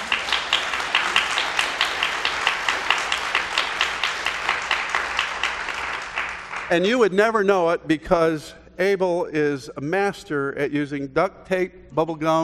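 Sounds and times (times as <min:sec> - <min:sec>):
audience applause: 0:00.0 - 0:07.1
speech: 0:06.7 - 0:12.4.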